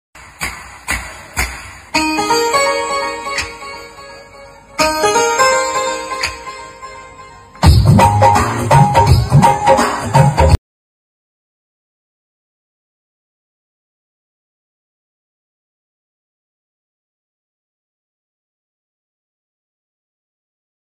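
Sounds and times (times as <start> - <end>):
Hindi love song mobile ringtone: 2.0 - 9.8.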